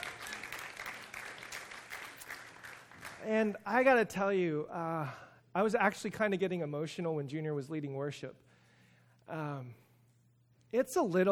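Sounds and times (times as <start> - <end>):
crowd applauding: 0.0 - 3.4
speech: 3.2 - 8.5, 9.3 - 9.8, 10.7 - 11.3.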